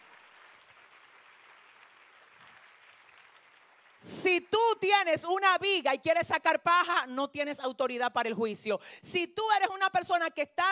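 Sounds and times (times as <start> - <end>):
audience applause: 0.0 - 4.1
speech: 4.0 - 10.6.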